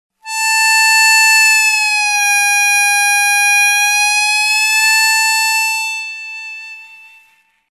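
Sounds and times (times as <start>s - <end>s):
harmonica note bending: 0.2s - 7.6s.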